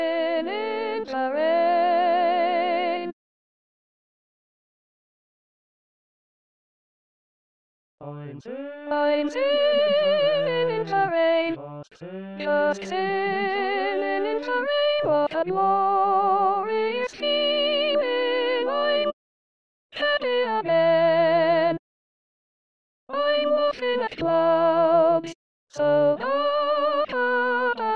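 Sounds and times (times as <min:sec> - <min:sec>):
soprano voice of SATB choir singing: 0:00.0 - 0:03.1, 0:08.9 - 0:11.6, 0:12.4 - 0:19.2, 0:20.0 - 0:21.8, 0:23.1 - 0:27.9.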